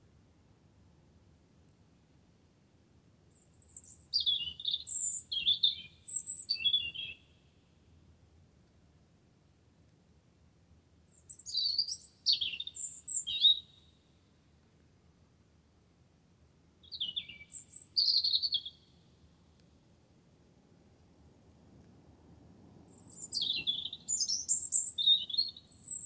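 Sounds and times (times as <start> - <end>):
wren singing: 3.5 - 7.2, 11.2 - 13.8, 16.8 - 18.9, 22.9 - 26.0.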